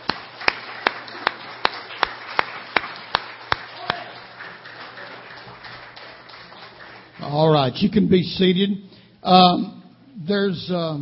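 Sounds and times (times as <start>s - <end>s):
audience hand clapping in praise: 0.0s - 7.6s
speech: 7.2s - 10.9s.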